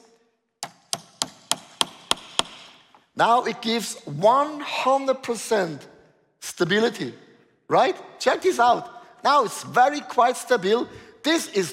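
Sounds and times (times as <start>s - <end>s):
nail hammered into wood: 0.6s - 2.8s
speech: 3.2s - 5.9s, 6.6s - 11.7s.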